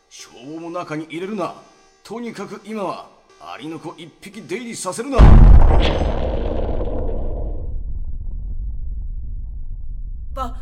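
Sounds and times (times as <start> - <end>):
speech: 0.1 - 6.5
explosion: 5.2 - 10.3
deep rumble: 5.2 - 10.6.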